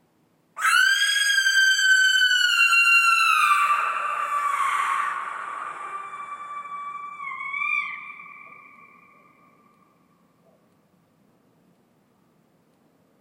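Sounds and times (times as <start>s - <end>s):
barn owl screams: 0.6s - 9.8s.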